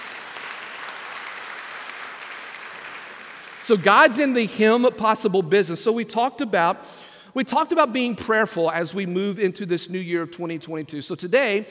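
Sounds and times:
audience applauding: 0:00.0 - 0:04.4
speech: 0:03.7 - 0:11.7.

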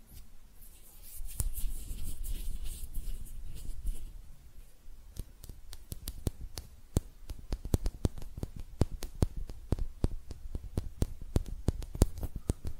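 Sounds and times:
hands softly rubbing and brushing: 0:00.6 - 0:04.2, 0:05.2 - 0:12.7
sharp taps and clicks: 0:05.1 - 0:12.7.

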